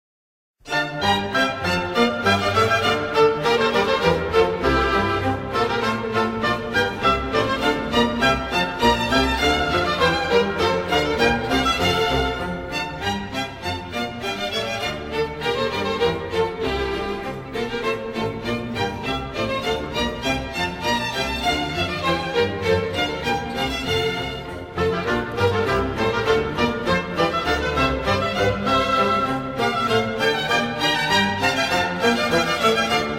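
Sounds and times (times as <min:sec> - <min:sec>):
baroque orchestral bourree: 0:00.6 - 0:33.1.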